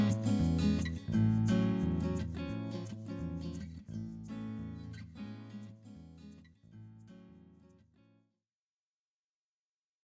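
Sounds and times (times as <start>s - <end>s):
percussion: 0.0s - 7.8s
bass: 0.0s - 8.0s.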